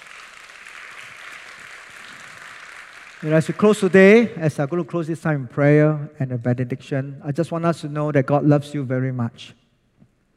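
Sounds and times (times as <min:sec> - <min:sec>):
audience applause: 0:00.0 - 0:04.4
speech: 0:03.2 - 0:09.6.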